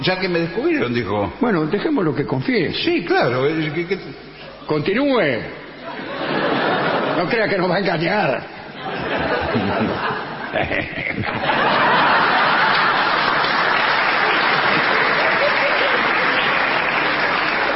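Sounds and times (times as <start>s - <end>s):
speech: 0.0s - 5.6s, 7.2s - 12.1s
laughter: 5.8s - 7.8s, 8.7s - 17.7s
audience applause: 11.5s - 17.7s.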